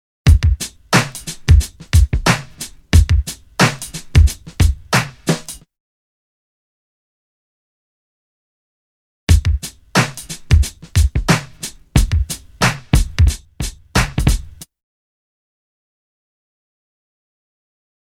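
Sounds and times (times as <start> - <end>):
drum loop: 0.3 - 5.6, 9.3 - 14.7.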